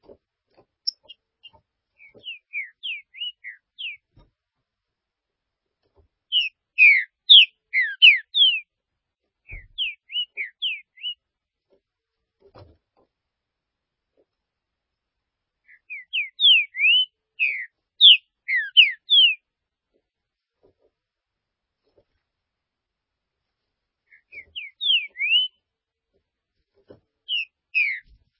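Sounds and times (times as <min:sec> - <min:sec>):
Green-winged saltator whistling song: 0:00.8 - 0:04.1, 0:06.3 - 0:08.7, 0:09.5 - 0:11.2, 0:15.7 - 0:19.4, 0:24.1 - 0:25.6, 0:27.3 - 0:28.2.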